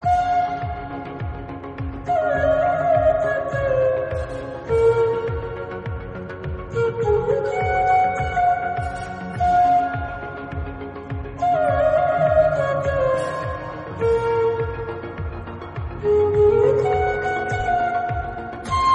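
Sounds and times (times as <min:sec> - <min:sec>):
flute: 0:00.0 - 0:18.9.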